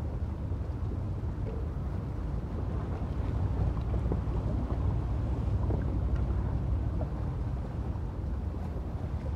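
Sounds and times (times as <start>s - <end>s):
calm measured soothing sea: 0.0s - 9.3s.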